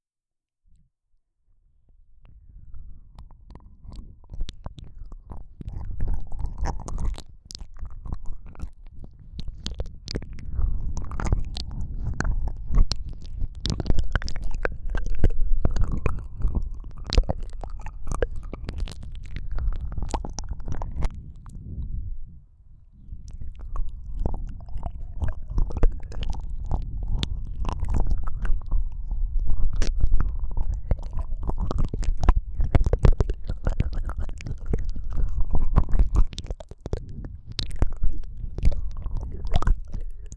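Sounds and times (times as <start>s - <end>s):
ASMR licking of both ears: 2.2s - 22.0s, 23.0s - 40.3s.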